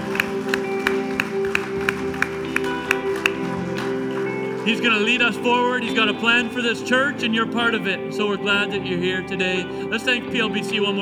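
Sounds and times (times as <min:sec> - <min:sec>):
church audience clapping: 0:00.0 - 0:06.7
speech: 0:04.7 - 0:11.0.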